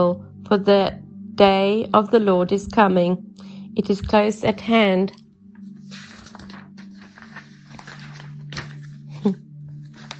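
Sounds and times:
speech: 0:00.0 - 0:05.2, 0:09.2 - 0:09.4
paper page turning: 0:05.8 - 0:10.1.

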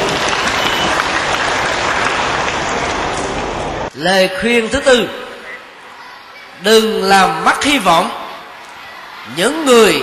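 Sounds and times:
audience applause: 0:00.0 - 0:03.6
speech: 0:04.0 - 0:05.2, 0:06.6 - 0:08.2, 0:09.2 - 0:10.0.

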